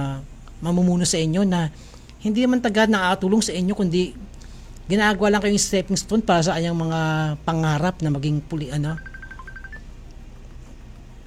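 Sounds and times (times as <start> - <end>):
speech: 0.0 - 9.1
phone ringtone for an incoming call: 9.0 - 9.9.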